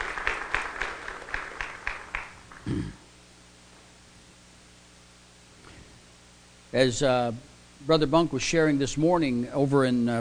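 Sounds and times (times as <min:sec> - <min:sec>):
audience applauding: 0:00.0 - 0:02.7
speech: 0:06.7 - 0:10.1.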